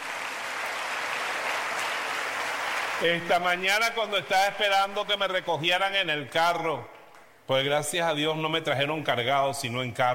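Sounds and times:
crowd applauding: 0.0s - 3.1s
speech: 3.0s - 6.9s, 7.5s - 10.1s.

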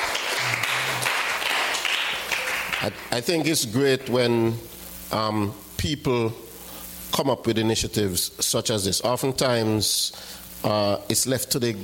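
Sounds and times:
audience applause: 0.0s - 3.1s
speech: 2.8s - 6.5s, 7.2s - 11.8s.

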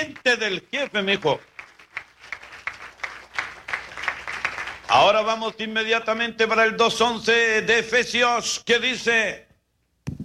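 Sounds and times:
speech: 0.0s - 1.5s, 4.9s - 9.4s
audience applause: 0.0s - 5.4s.

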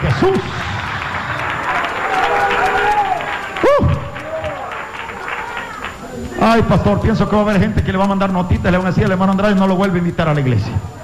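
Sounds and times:
audience applause: 0.0s - 6.7s
speech: 0.2s - 0.7s, 6.4s - 11.0s.

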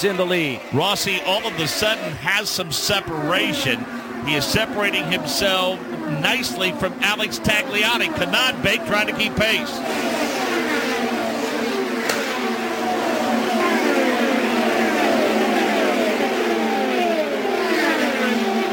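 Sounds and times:
speech: 0.0s - 10.2s
race car engines roaring down the straightaway: 0.0s - 18.7s.

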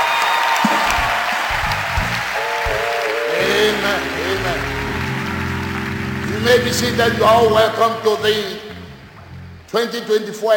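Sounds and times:
congregation applauding during a church service: 0.0s - 8.3s
faint low tones: 3.4s - 9.8s
speech: 6.4s - 8.6s, 9.7s - 10.5s.

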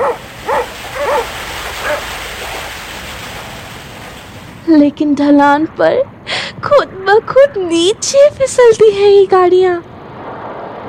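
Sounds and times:
sled dogs barking: 0.0s - 2.1s
speech: 4.7s - 9.9s.

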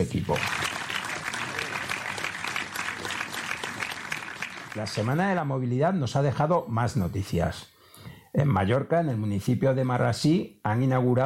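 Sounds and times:
speech: 0.0s - 0.6s, 4.8s - 7.7s, 8.4s - 11.2s
applause: 0.0s - 5.5s.

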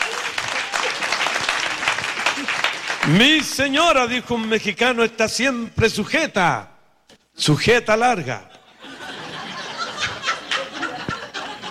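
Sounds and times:
audience applause: 0.0s - 3.4s
speech: 3.1s - 6.7s, 7.4s - 8.5s
laughter: 8.5s - 11.6s.

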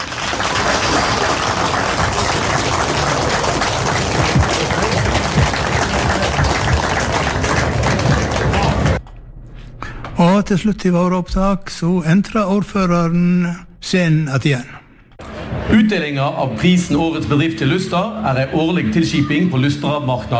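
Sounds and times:
audience applause: 0.0s - 9.0s
speech: 10.5s - 14.8s, 15.7s - 20.3s.

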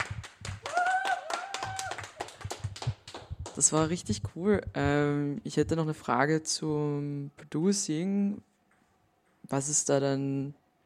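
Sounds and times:
audience clapping: 0.0s - 3.8s
speech: 3.6s - 8.5s, 9.5s - 10.6s.

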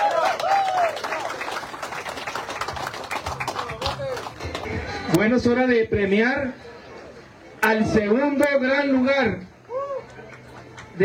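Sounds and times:
audience applause: 0.0s - 4.8s
speech: 5.1s - 6.7s, 7.6s - 9.5s.

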